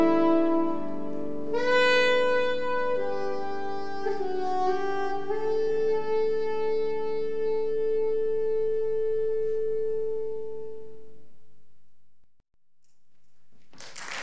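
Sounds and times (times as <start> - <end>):
jazz piano: 0.0 - 10.9
jazz soprano saxophone: 0.0 - 11.3.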